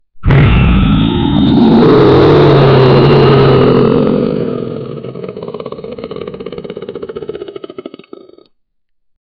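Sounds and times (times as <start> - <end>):
monsters roaring: 0.2 - 8.5.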